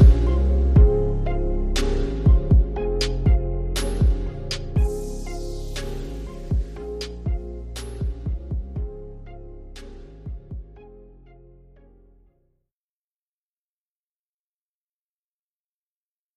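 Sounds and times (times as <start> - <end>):
music beat: 0.0 - 10.8.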